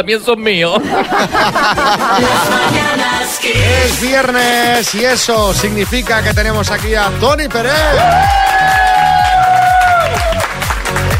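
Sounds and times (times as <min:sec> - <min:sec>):
speech: 0:00.0 - 0:09.1
laughter: 0:00.8 - 0:03.4
applause and cheering: 0:07.8 - 0:11.1
long high whoop or whistle: 0:07.9 - 0:10.4.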